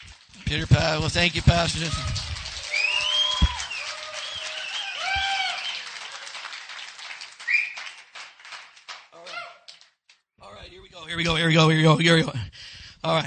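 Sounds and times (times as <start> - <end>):
audience clapping: 0.0 - 10.2
speech: 0.4 - 2.3, 11.2 - 13.2.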